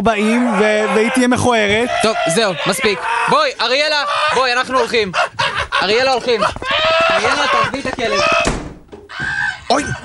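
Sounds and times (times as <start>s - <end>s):
speech: 0.0s - 8.5s, 9.7s - 10.0s
laughter: 1.8s - 8.5s, 9.2s - 10.0s
person falling down the stairs: 5.6s - 9.7s.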